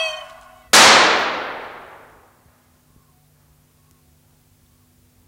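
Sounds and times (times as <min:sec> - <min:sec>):
gunshot: 0:00.8 - 0:02.3.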